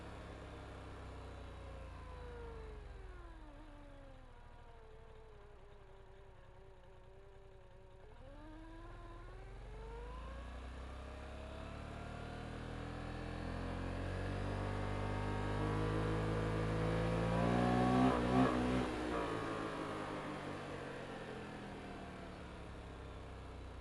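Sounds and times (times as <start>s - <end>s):
Polaris Scrambler ATV engine driving off onboard ramps: 0.0s - 23.7s.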